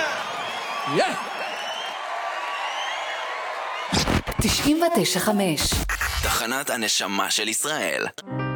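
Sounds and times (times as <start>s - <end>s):
crowd applauding and cheering: 0.0s - 4.6s
speech: 0.9s - 1.5s, 3.9s - 8.4s.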